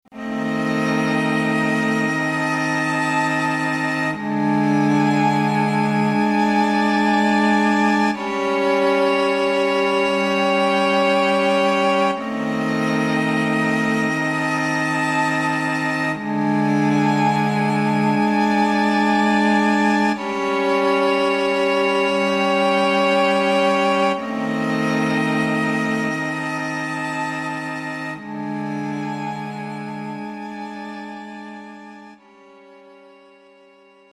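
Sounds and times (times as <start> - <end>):
string instruments: 0.0 - 34.1.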